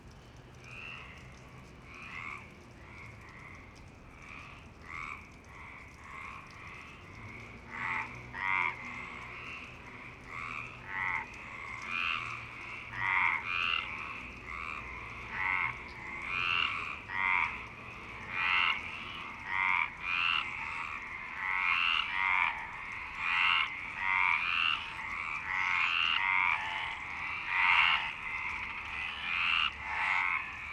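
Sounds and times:
frog chorus of rasping croaks: 0:00.3 - 0:30.7.

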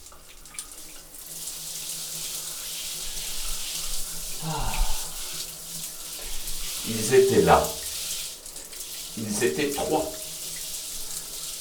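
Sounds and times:
shower water running: 0:00.0 - 0:11.6
speech: 0:06.8 - 0:07.8, 0:09.2 - 0:10.2.

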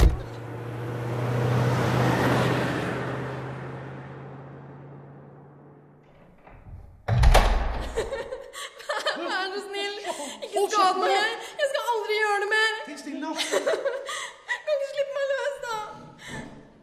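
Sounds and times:
loud knock: 0:00.0 - 0:00.4, 0:06.4 - 0:08.3
car engine rumble: 0:00.0 - 0:08.0
laughter: 0:07.8 - 0:12.0, 0:13.1 - 0:15.8.

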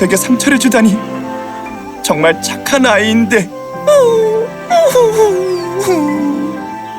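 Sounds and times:
speech: 0:00.0 - 0:01.4, 0:02.0 - 0:06.4
voice imitating a wolf whimpering and crying: 0:03.8 - 0:06.6.

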